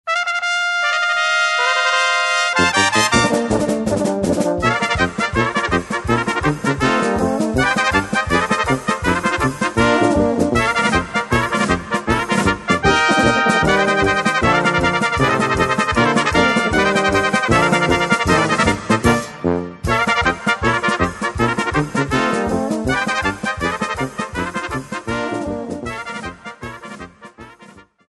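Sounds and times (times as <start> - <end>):
trumpets playing: 0.1 - 28.0
laughter: 12.9 - 15.0, 16.0 - 18.1.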